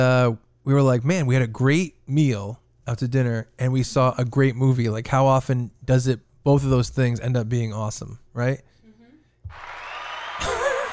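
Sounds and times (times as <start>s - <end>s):
speech: 0.0s - 8.7s
applause sound effect from a button: 9.5s - 10.9s.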